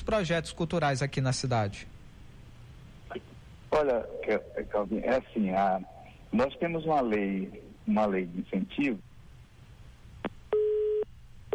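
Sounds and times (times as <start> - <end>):
speech: 0.1 - 2.0, 3.1 - 9.1
telephone busy signal after a dropped call during a phone interview: 10.6 - 11.5.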